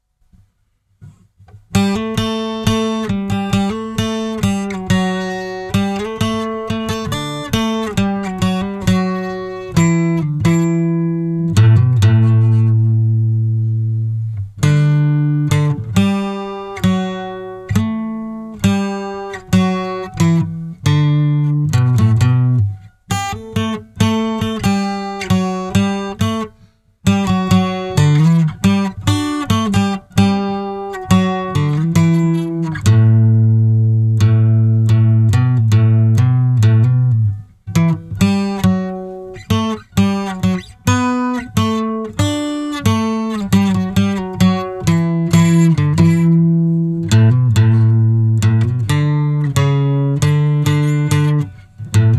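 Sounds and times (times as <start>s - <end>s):
12-string guitar in D: 1.0s - 52.1s.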